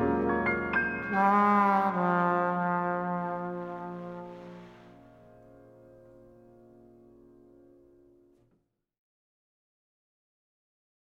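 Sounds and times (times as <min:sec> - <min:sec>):
trumpet: 0:00.0 - 0:05.2
piano: 0:00.0 - 0:08.5.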